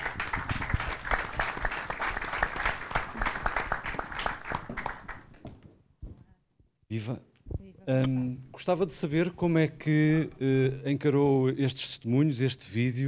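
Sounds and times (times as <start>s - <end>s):
conference audience applause in Braga: 0.0s - 5.4s
speech: 7.0s - 7.3s, 7.9s - 13.0s.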